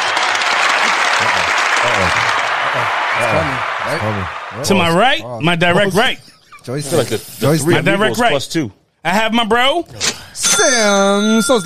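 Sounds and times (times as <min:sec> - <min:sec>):
audience applause for a guest being introduced: 0:00.0 - 0:05.1
speech: 0:02.8 - 0:11.6.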